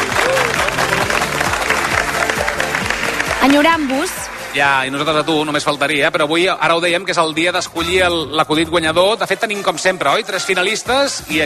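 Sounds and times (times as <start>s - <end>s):
audience applause: 0.0s - 5.4s
speech: 3.4s - 11.4s.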